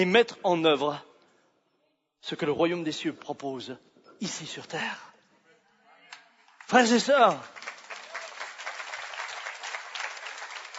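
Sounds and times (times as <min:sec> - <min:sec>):
speech: 0:00.0 - 0:01.1, 0:02.2 - 0:05.1, 0:06.7 - 0:07.6
church congregation of about fifteen people applauding: 0:06.1 - 0:10.7.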